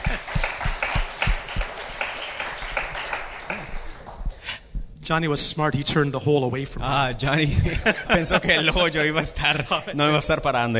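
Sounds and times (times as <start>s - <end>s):
laughter: 0.0s - 1.0s, 7.4s - 10.4s
audience applause: 0.0s - 4.5s
speech: 5.1s - 10.7s.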